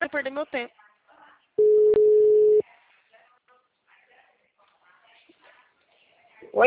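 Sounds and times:
telephone line tone after a dropped call: 0:01.6 - 0:02.6.

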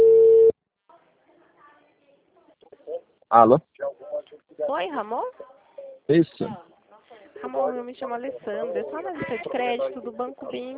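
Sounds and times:
electronic telephone tone: 0:00.0 - 0:00.5
speech: 0:03.3 - 0:03.7, 0:04.7 - 0:05.4, 0:06.1 - 0:06.7, 0:07.4 - 0:10.7.

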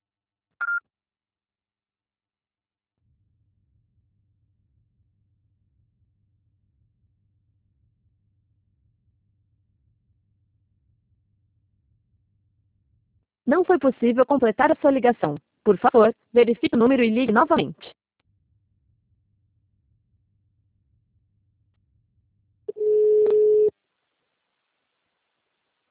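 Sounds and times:
speech: 0:13.5 - 0:18.0
voicemail tone after the greeting: 0:22.7 - 0:23.7.

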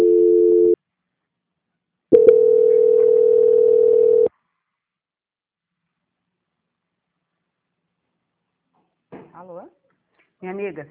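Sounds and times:
telephone line tone while a call is transferred: 0:00.0 - 0:00.8, 0:02.2 - 0:04.3
speech: 0:10.4 - 0:10.8.

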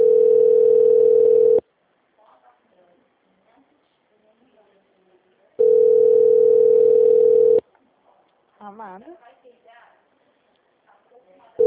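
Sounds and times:
telephone ringback tone while placing a call: 0:00.0 - 0:01.6, 0:05.6 - 0:07.6.

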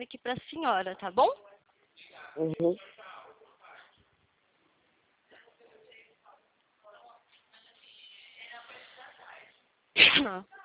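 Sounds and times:
speech: 0:00.0 - 0:01.5, 0:02.4 - 0:03.0, 0:10.0 - 0:10.6
cough: 0:10.0 - 0:10.4.

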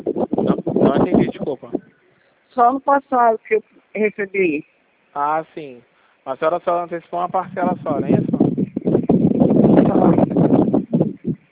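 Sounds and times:
strong wind blowing: 0:00.0 - 0:01.9, 0:07.1 - 0:11.5
speech: 0:01.0 - 0:01.8, 0:02.6 - 0:08.3.

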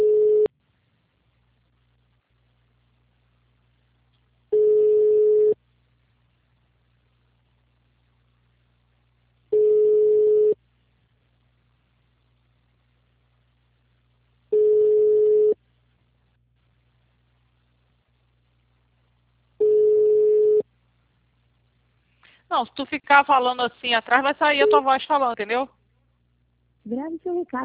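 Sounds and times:
ringing tones of a telephone call being placed: 0:00.0 - 0:00.5, 0:04.5 - 0:05.6, 0:09.5 - 0:10.6, 0:14.5 - 0:15.6, 0:19.6 - 0:20.6
faint low hum: 0:00.0 - 0:27.6
speech: 0:22.6 - 0:25.8, 0:26.9 - 0:27.6.

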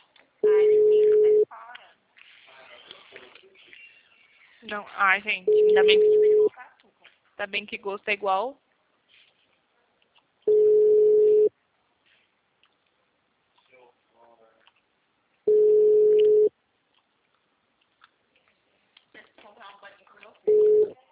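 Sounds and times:
telephone busy signal: 0:00.4 - 0:01.5, 0:05.5 - 0:06.5, 0:10.5 - 0:11.5, 0:15.5 - 0:16.5, 0:20.5 - 0:20.9
speech: 0:04.7 - 0:06.3, 0:07.4 - 0:08.6.

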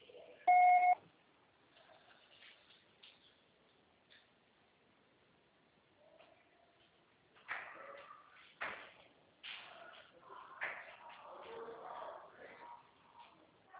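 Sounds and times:
voicemail recording beep: 0:00.5 - 0:01.0
faint clicks and rustles: 0:01.6 - 0:04.4, 0:06.0 - 0:13.7.

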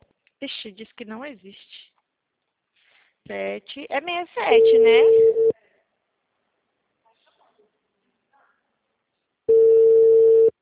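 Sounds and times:
speech: 0:00.4 - 0:01.9, 0:03.2 - 0:05.5
telephone call ringing tone: 0:04.5 - 0:05.5, 0:09.5 - 0:10.6.

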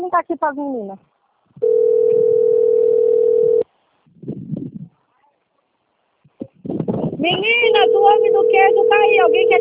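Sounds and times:
speech: 0:00.2 - 0:02.6, 0:07.2 - 0:09.5
telephone ringing tone: 0:01.6 - 0:03.7, 0:07.6 - 0:09.5.

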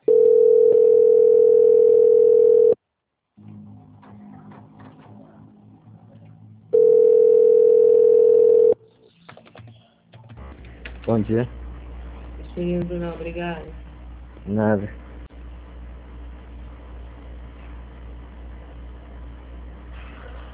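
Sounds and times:
telephone tone while a call is being transferred: 0:00.0 - 0:02.8, 0:06.8 - 0:08.8
speech: 0:11.2 - 0:11.6, 0:12.6 - 0:15.0.

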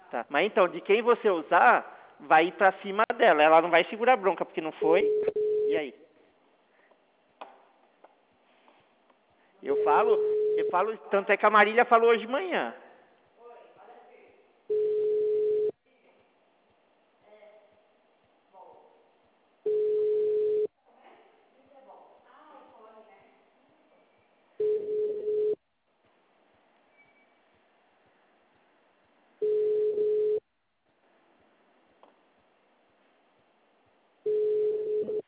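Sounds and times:
speech: 0:00.1 - 0:06.0, 0:09.6 - 0:12.8
telephone tone after a dropped call: 0:05.0 - 0:05.8, 0:09.7 - 0:10.7, 0:14.7 - 0:15.7, 0:19.7 - 0:20.7, 0:24.6 - 0:25.6, 0:29.4 - 0:30.4, 0:34.3 - 0:35.2.

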